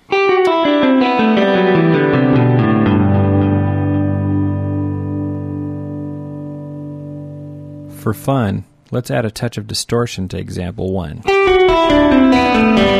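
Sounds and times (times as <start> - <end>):
guitar ringing notes and sustained chord with reverb and delay: 0.0 - 8.7, 11.3 - 12.9
speech: 8.1 - 12.9.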